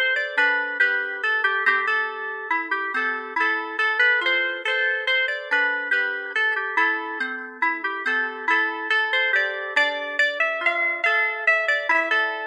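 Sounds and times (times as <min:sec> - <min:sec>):
harpika: 0:00.0 - 0:12.4.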